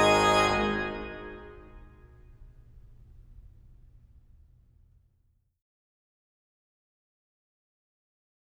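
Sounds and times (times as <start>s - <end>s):
organ fanfare on reeds and other festal stops: 0.0s - 3.4s.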